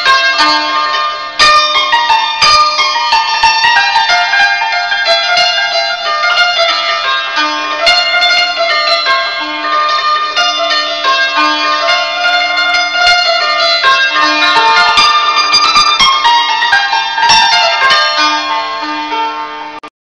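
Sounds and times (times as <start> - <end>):
santur: 0.0 - 19.9.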